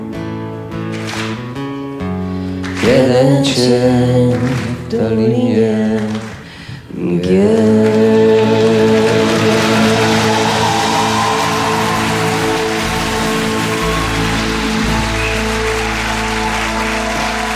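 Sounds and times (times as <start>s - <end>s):
audience applause: 0.9s - 1.5s, 7.9s - 17.5s
speech: 2.9s - 6.3s, 7.1s - 8.1s.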